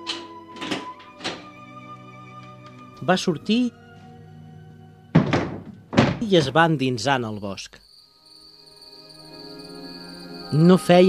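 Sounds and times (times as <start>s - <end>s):
door creaking open and shutting: 0.0s - 3.2s, 5.1s - 6.7s
soft tonal music bed: 0.0s - 11.0s
narrator speaking: 3.0s - 3.8s, 6.2s - 7.8s, 10.6s - 11.0s
speech: 3.0s - 3.8s, 6.3s - 7.9s, 10.5s - 11.0s.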